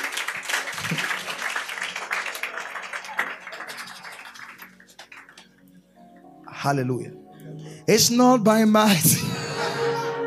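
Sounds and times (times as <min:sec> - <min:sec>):
audience clapping: 0:00.0 - 0:05.8
speech: 0:06.6 - 0:09.6.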